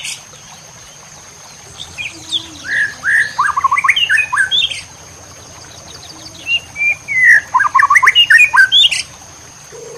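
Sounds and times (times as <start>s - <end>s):
white-rumped shama song: 1.9s - 4.8s, 6.0s - 9.0s.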